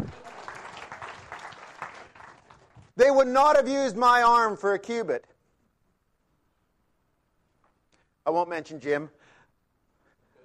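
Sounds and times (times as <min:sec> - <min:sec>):
audience clapping: 0:00.0 - 0:03.0
speech: 0:03.0 - 0:05.3, 0:08.3 - 0:09.2.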